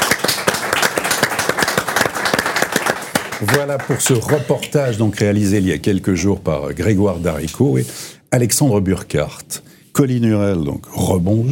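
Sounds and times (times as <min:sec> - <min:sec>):
audience applause: 0:00.0 - 0:04.7
speech: 0:03.4 - 0:11.5.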